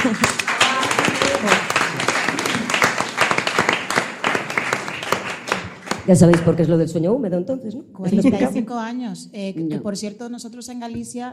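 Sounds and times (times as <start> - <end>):
crowd applause: 0.0 - 6.5
speech: 6.1 - 11.3.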